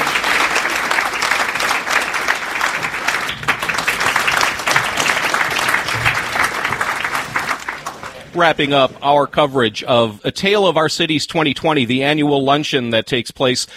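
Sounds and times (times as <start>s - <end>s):
audience applause: 0.0s - 9.0s
speech: 8.4s - 13.7s.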